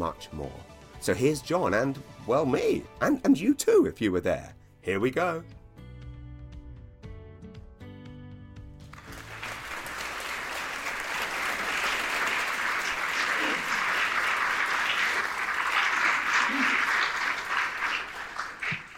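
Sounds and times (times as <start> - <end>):
speech: 0.0 - 5.6
sustained applause from a large audience: 8.9 - 18.9.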